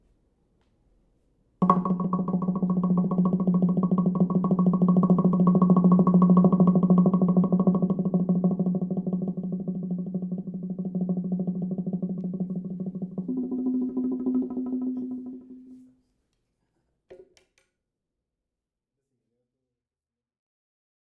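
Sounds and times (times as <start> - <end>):
Prehispanic percussion: 1.6 - 16.0.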